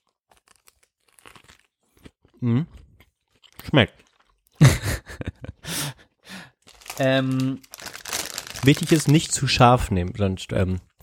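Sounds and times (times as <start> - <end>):
person chewing a çiğ köfte wrap rolled in dürüm bread: 0.0 - 4.6
speech: 2.4 - 2.8, 3.7 - 4.0, 7.0 - 7.7, 8.6 - 10.9
laughter: 4.6 - 5.9.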